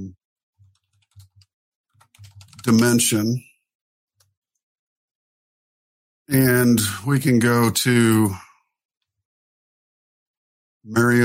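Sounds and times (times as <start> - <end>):
typing on a computer keyboard: 0.6 - 2.8
speech: 2.7 - 3.5, 6.3 - 8.5, 10.8 - 11.2.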